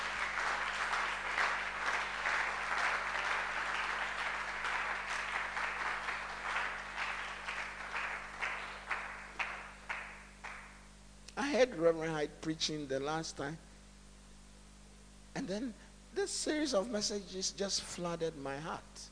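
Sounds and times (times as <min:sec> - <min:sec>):
audience clapping: 0:00.0 - 0:10.9
speech: 0:11.5 - 0:13.7, 0:15.5 - 0:19.1.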